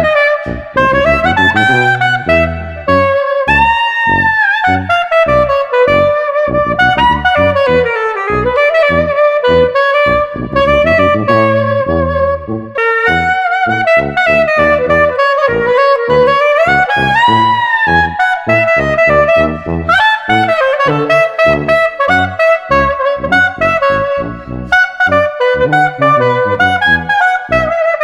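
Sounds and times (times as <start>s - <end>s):
upbeat street clarinet combo without drums: 0.0s - 28.0s.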